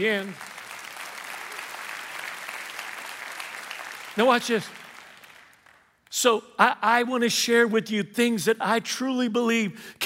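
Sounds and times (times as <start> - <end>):
speech: 0.0 - 0.5, 4.2 - 4.8, 6.1 - 10.0
crowd clapping: 0.0 - 6.1.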